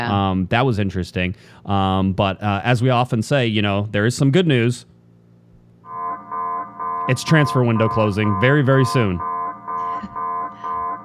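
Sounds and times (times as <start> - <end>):
speech: 0.0 - 4.9, 7.1 - 9.3
fancy alarm sound effect: 5.9 - 11.0.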